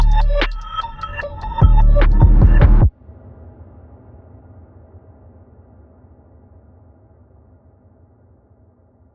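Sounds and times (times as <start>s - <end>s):
modern trap beats: 0.0s - 2.9s.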